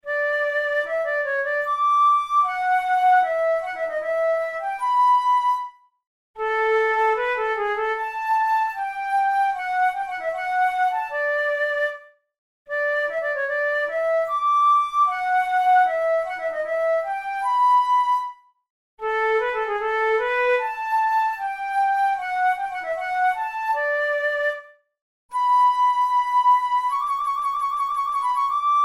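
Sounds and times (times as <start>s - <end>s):
studies for the Boehm flute: 0.0s - 28.8s.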